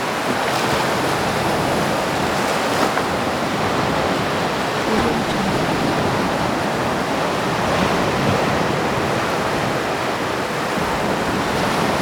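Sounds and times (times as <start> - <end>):
stormy sea surf: 0.0 - 12.0
stormy sea waves splashing: 0.5 - 9.2.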